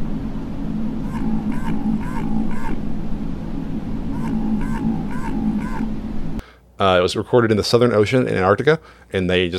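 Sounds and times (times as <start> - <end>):
Antarctic minke whale bioduck call: 0.9 - 3.0, 4.0 - 6.1
speech: 6.8 - 9.5.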